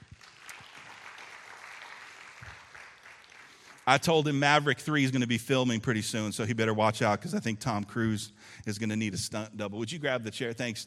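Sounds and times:
audience applause: 0.0 - 3.9
speech: 3.9 - 10.8.

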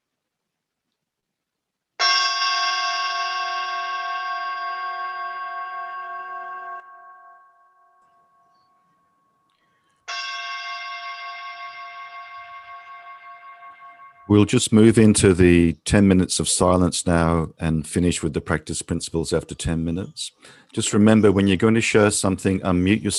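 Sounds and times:
meditation bell ringing: 2.0 - 14.5
speech: 14.3 - 23.1.

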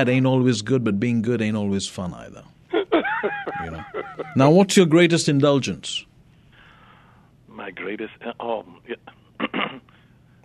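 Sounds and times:
speech: 0.0 - 2.6, 3.6 - 6.1, 7.6 - 9.8
laughter: 2.7 - 4.4
person clearing throat: 9.0 - 9.9.

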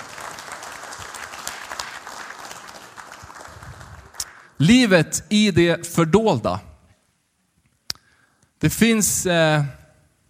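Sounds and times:
audience applause: 0.0 - 4.6
speech: 4.6 - 6.7, 8.6 - 9.8.

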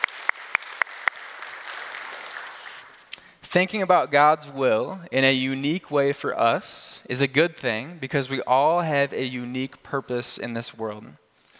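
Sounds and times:
audience applause: 0.0 - 3.1
speech: 3.5 - 11.2.

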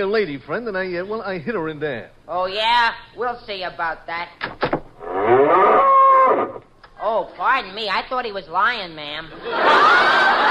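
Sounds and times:
speech: 0.0 - 4.5, 5.2 - 10.4
cow mooing: 5.0 - 6.6
laughter: 9.4 - 10.4.

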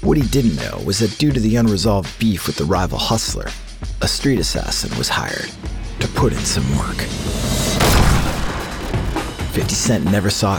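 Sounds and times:
speech: 0.1 - 7.8, 9.6 - 10.5
gunshots through a car window: 7.4 - 9.5.

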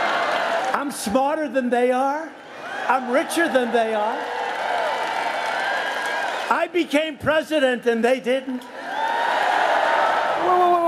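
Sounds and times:
crowd cheering at a rally: 0.0 - 1.2, 2.4 - 6.7, 8.6 - 10.8
speech: 0.7 - 4.4, 6.5 - 8.8.

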